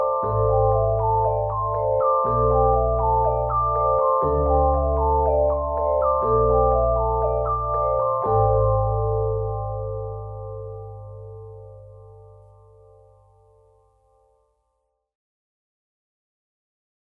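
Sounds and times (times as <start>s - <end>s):
gamelan music: 0.0s - 13.0s.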